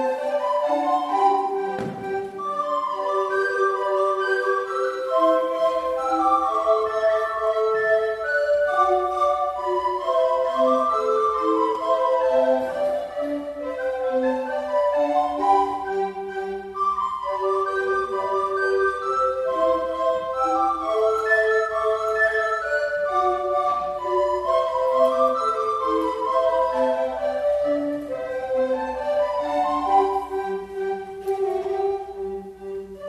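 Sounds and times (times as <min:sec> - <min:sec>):
traditional hornpipe dance tune: 0:00.2 - 0:33.0.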